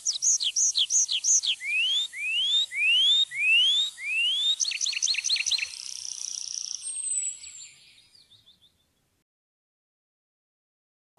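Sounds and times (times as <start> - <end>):
tree pipit song with high falling notes and fast trill: 0.0 - 9.0.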